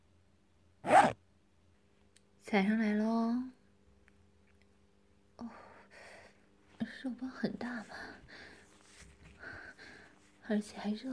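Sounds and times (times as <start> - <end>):
clothing zipper being pulled open: 0.8 - 1.2
speech: 2.5 - 3.6, 7.0 - 8.4, 10.5 - 11.1.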